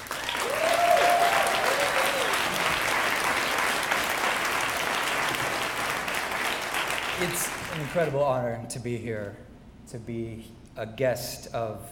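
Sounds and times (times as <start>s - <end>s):
audience applause welcoming a speaker: 0.0s - 8.2s
speech: 7.2s - 11.9s.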